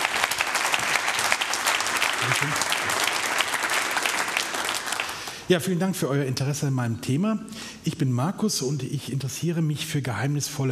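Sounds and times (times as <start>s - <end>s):
audience applause: 0.0s - 5.5s
speech: 2.2s - 3.0s, 5.5s - 10.7s.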